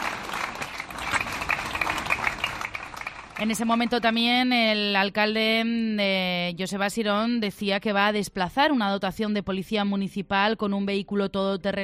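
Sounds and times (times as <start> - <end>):
crowd applause in town square: 0.0 - 4.2
speech: 3.4 - 11.8.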